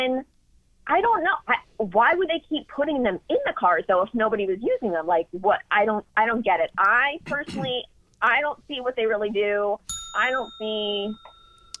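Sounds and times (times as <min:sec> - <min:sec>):
speech: 0:00.0 - 0:00.3, 0:00.9 - 0:11.7
bell ringing: 0:09.9 - 0:11.7.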